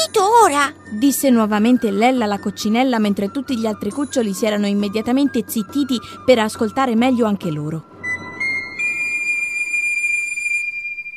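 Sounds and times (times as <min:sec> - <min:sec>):
speech: 0:00.0 - 0:07.9
melodious pipe whistling: 0:07.9 - 0:11.1.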